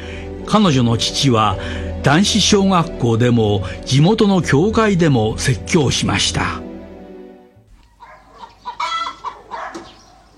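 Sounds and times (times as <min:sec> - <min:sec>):
speech: 0:00.5 - 0:06.6
live chicken clucking: 0:08.0 - 0:10.3.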